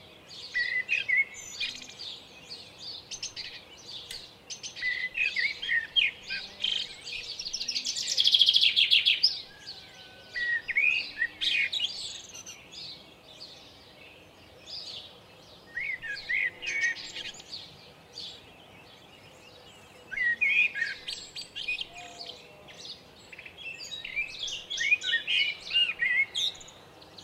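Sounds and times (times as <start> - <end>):
common blackbird singing whistled phrases: 0.5 - 2.1, 2.8 - 12.6, 15.7 - 17.5, 20.1 - 22.4, 23.3 - 27.2.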